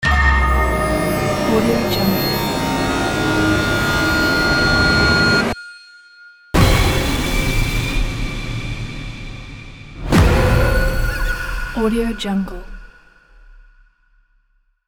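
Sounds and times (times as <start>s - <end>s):
scary horror logo sound: 0.0s - 5.6s, 6.6s - 11.8s.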